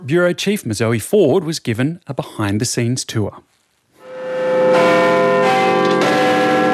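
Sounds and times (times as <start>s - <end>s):
speech: 0.1s - 3.5s
Big Ben clock tower bell bonging in London: 4.0s - 6.7s.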